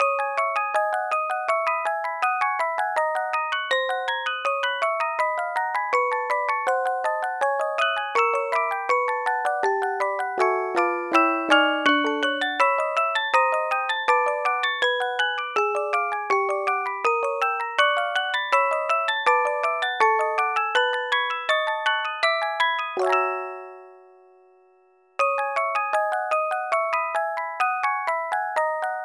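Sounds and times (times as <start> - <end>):
music box: 0.0 - 29.0.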